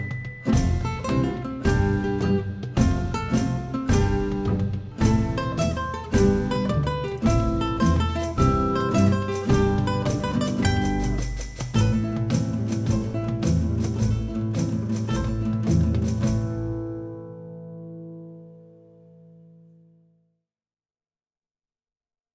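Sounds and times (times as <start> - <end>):
pleasant pirate bar ambience: 0.0 - 17.1.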